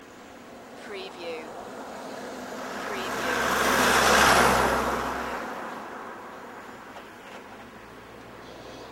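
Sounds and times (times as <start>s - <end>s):
car driving by: 1.4s - 8.8s.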